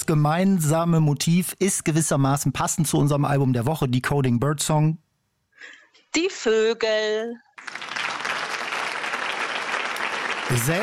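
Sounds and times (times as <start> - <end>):
speech: 0.1 - 5.0, 5.6 - 7.8, 10.5 - 10.8
applause: 7.6 - 10.8.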